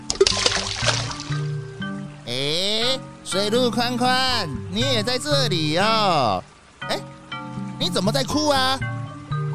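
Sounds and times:
small objects splashing into a stream: 0.0s - 1.5s
sustained tonal background: 1.0s - 9.5s
speech: 3.0s - 7.1s, 7.8s - 8.9s.

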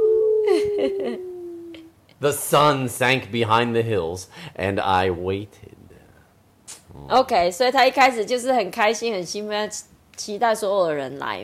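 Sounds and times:
person imitating coyote howl: 0.0s - 1.9s
speech: 0.8s - 1.3s, 2.2s - 5.8s, 6.9s - 11.4s.

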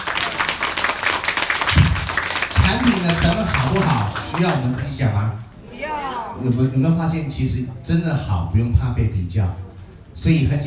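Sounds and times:
audience applause: 0.0s - 5.0s
speech: 2.8s - 5.4s, 6.4s - 10.6s.

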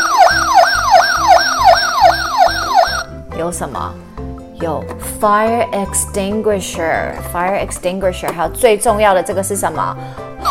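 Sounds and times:
fire engine siren yelping: 0.0s - 3.1s
speech: 3.4s - 10.2s.

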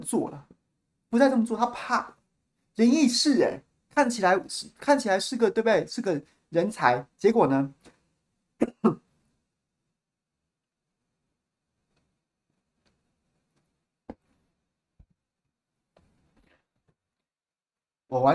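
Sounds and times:
speech: 0.0s - 0.5s, 1.1s - 2.2s, 2.8s - 7.9s, 8.6s - 9.0s, 18.1s - 18.3s
person coughing after choking: 8.6s - 9.1s.

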